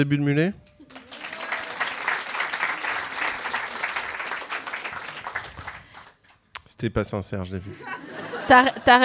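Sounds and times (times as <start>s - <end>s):
speech: 0.0s - 0.6s, 6.8s - 9.0s
audience applause: 0.8s - 6.3s
laughter: 7.6s - 9.0s.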